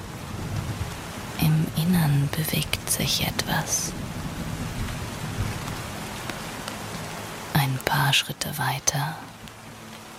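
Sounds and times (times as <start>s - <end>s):
steady rain hissing: 0.0s - 10.1s
speech: 1.8s - 4.2s, 7.9s - 9.3s
raindrops tapping: 2.0s - 8.0s, 9.2s - 10.1s.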